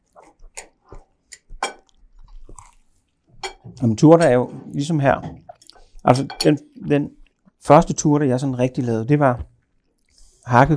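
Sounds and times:
chewing food: 0:00.0 - 0:03.4, 0:05.4 - 0:06.0, 0:07.1 - 0:07.6
speech: 0:03.8 - 0:05.4, 0:06.0 - 0:09.5, 0:10.4 - 0:10.7.

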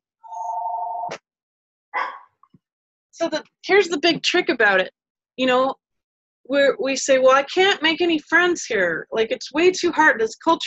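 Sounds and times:
mobile phone ringing: 0:00.3 - 0:01.1
speech: 0:03.2 - 0:05.8, 0:06.5 - 0:10.6.

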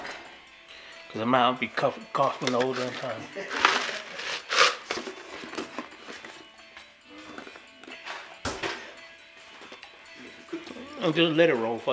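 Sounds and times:
speech: 0:01.1 - 0:03.8, 0:11.0 - 0:11.9
plastic water bottle crinkling as it is handled: 0:02.4 - 0:06.4.

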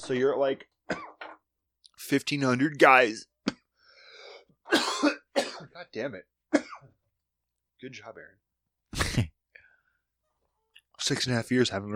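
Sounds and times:
speech: 0:00.0 - 0:00.8, 0:02.0 - 0:03.3, 0:05.8 - 0:06.3, 0:07.8 - 0:08.4, 0:11.0 - 0:11.9
person coughing into a microphone: 0:04.6 - 0:05.8, 0:09.0 - 0:09.4.

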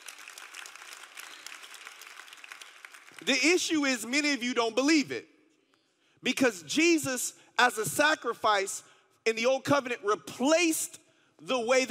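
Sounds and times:
audience clapping hands: 0:00.0 - 0:03.8
speech: 0:03.2 - 0:05.3, 0:06.2 - 0:11.8.

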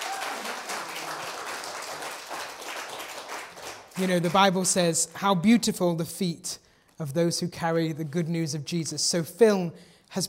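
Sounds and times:
round of applause: 0:00.0 - 0:04.8
speech: 0:04.0 - 0:10.2.

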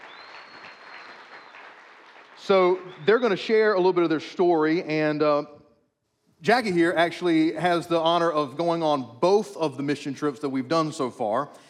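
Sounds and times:
audience applause: 0:00.0 - 0:03.0
speech: 0:02.4 - 0:05.6, 0:06.4 - 0:11.6.

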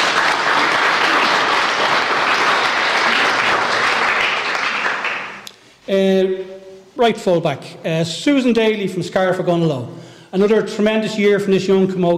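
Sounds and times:
audience round of applause: 0:00.0 - 0:05.4
speech: 0:05.9 - 0:06.4, 0:07.0 - 0:12.1.

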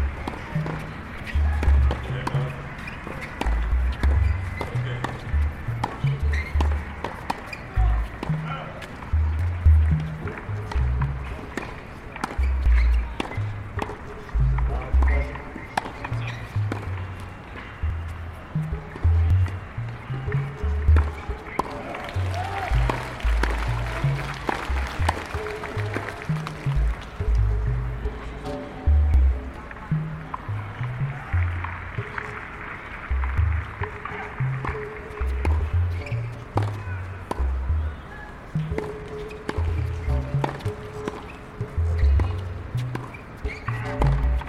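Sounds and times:
crowd murmur at the US Open tennis tournament in New York: 0:00.0 - 0:44.4.

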